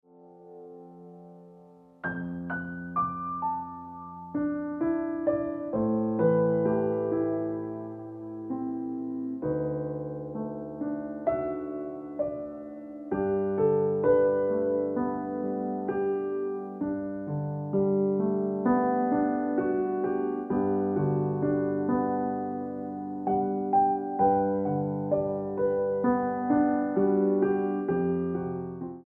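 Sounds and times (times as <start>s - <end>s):
piano ringtone music: 0.1s - 29.0s.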